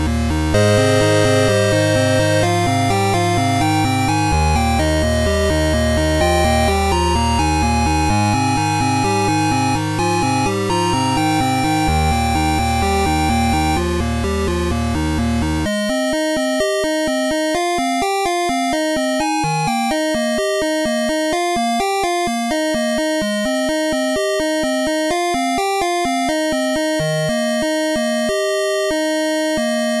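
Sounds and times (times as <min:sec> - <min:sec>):
8-bit chiptune: 0:00.0 - 0:29.9.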